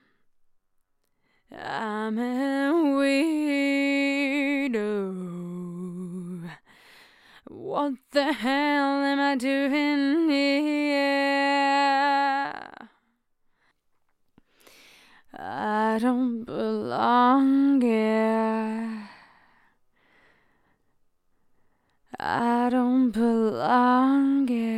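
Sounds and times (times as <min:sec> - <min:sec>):
vocoder vocals in a chorus: 0:01.5 - 0:06.7, 0:07.4 - 0:13.0, 0:15.3 - 0:19.4, 0:22.1 - 0:24.7.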